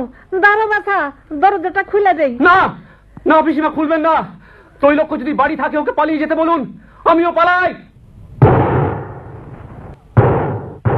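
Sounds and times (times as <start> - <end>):
speech: 0.0 - 7.9
gunshots at a house door in a dramatized scene: 8.4 - 10.9.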